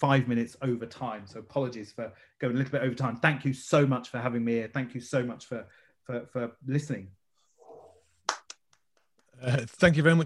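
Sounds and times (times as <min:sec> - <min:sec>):
speech: 0:00.0 - 0:07.2, 0:09.4 - 0:10.2
scattered hand claps from an audience: 0:08.2 - 0:09.3.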